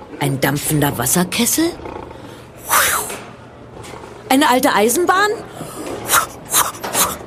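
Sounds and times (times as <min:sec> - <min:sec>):
speech: 0:00.1 - 0:02.0, 0:04.3 - 0:05.5
very large cat hissing: 0:01.9 - 0:03.2, 0:06.0 - 0:07.2.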